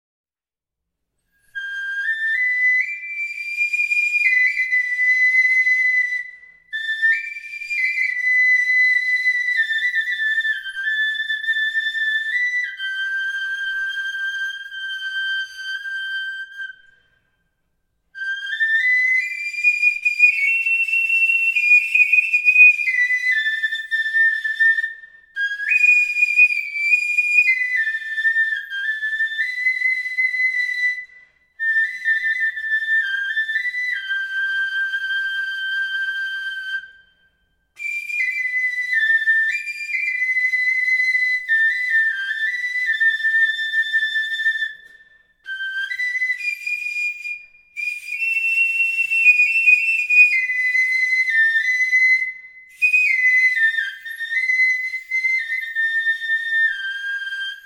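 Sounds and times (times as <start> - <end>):
flauto osso bone flute: 1.2 - 57.6.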